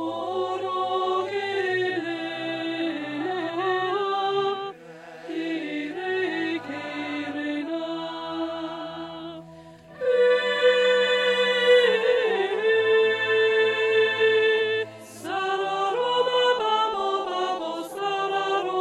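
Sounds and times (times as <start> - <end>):
alto melody: 0.0 - 18.8.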